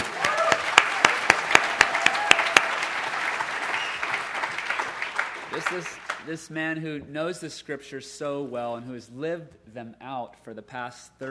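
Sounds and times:
applause: 0.0s - 6.3s
speech: 5.6s - 11.2s.

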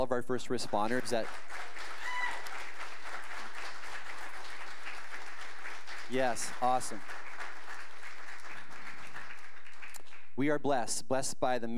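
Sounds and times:
speech: 0.0s - 2.0s, 6.1s - 7.2s, 10.4s - 11.7s
audience applause: 0.6s - 10.2s
audience cheer or whistle: 2.0s - 2.5s.

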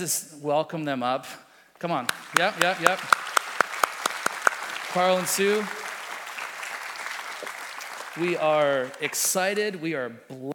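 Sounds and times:
speech: 0.0s - 3.2s, 4.9s - 5.8s, 8.2s - 10.5s
audience applause: 2.1s - 9.6s.

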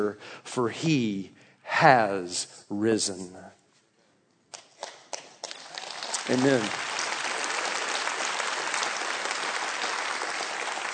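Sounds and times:
speech: 0.0s - 3.6s, 6.3s - 6.9s
audience clapping: 4.6s - 10.9s.

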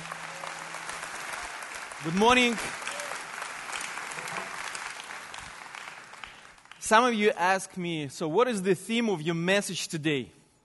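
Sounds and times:
audience applause at Woods Edge welcoming a speaker: 0.0s - 6.9s
speech: 2.0s - 2.8s, 6.9s - 10.4s.

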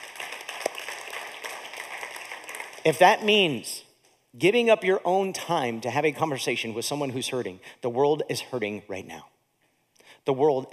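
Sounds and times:
audience clapping: 0.0s - 3.3s
speech: 2.8s - 3.8s, 4.4s - 9.3s, 10.3s - 10.7s.

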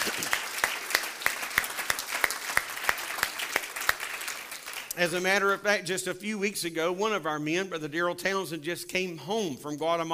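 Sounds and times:
audience applause: 0.0s - 5.0s
speech: 5.0s - 10.1s.

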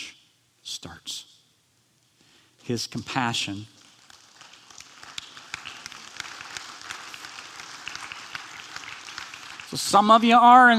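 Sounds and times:
speech: 0.8s - 1.3s, 2.7s - 3.8s, 9.7s - 10.7s
congregation clapping faintly: 3.6s - 10.3s.

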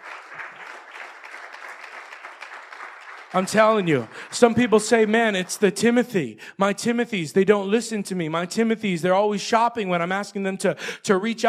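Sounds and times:
audience applause: 0.0s - 5.7s
speech: 3.3s - 11.4s.

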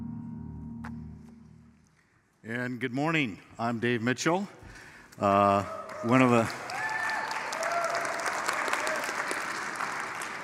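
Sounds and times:
speech: 2.5s - 4.6s, 5.2s - 6.7s
congregation clapping in church: 5.3s - 10.4s.

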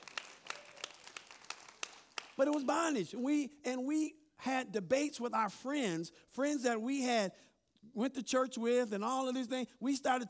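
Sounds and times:
crowd clapping in rhythm: 0.0s - 3.0s
speech: 2.4s - 10.2s.

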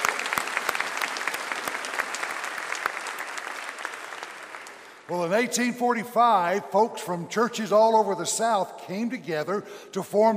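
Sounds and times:
crowd clapping steadily: 0.0s - 5.1s
speech: 5.1s - 10.3s.

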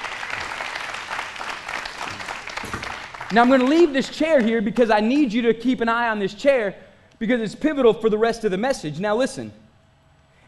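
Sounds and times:
audience applauding: 0.0s - 4.9s
speech: 3.3s - 9.6s.

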